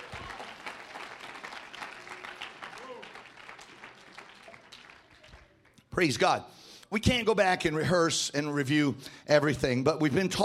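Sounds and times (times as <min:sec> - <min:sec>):
crowd audience clapping hands: 0:00.0 - 0:06.2
speech: 0:06.0 - 0:10.4.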